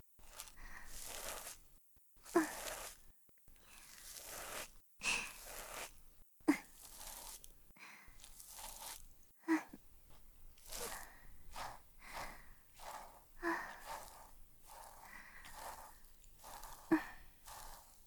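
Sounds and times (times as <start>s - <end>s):
ear cleaning sound effects: 0.2s - 3.0s, 3.6s - 7.5s, 8.1s - 9.1s, 10.1s - 18.0s
breathing: 0.6s - 1.0s, 7.8s - 8.2s, 12.0s - 16.1s.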